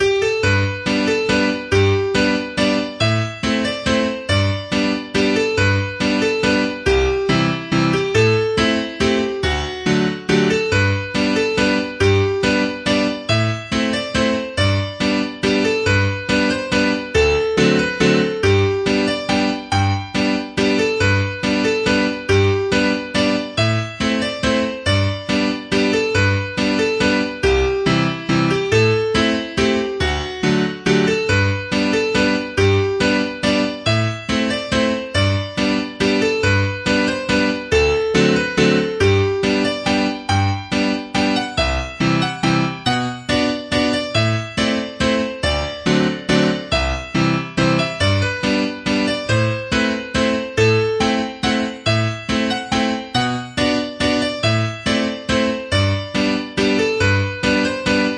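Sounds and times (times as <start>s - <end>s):
waltz in E major: 0.0s - 58.1s.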